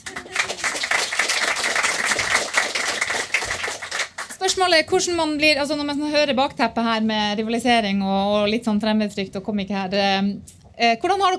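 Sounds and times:
audience applause: 0.0s - 4.4s
speech: 4.5s - 11.3s.

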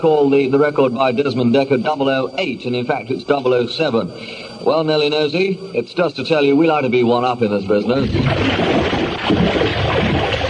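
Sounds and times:
speech: 0.0s - 9.6s
water splashing: 7.9s - 10.4s.

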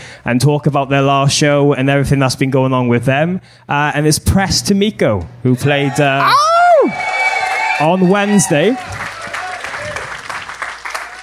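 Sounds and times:
speech: 0.2s - 7.0s, 7.8s - 9.0s
audience shouting for a band: 5.8s - 10.3s
audience clapping for a band: 6.8s - 11.2s.

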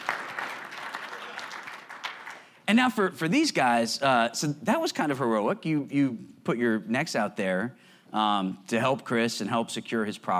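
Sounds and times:
audience applause: 0.0s - 2.5s
speech: 2.7s - 10.3s.

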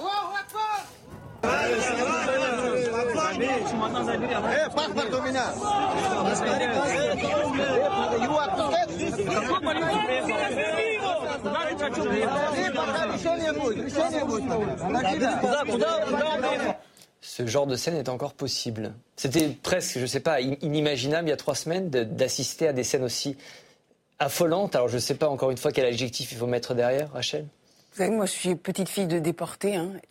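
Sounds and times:
agitated mob shouting at Makhachkala airport: 0.0s - 16.8s
speech: 3.6s - 16.8s, 17.4s - 23.6s, 24.2s - 30.0s.

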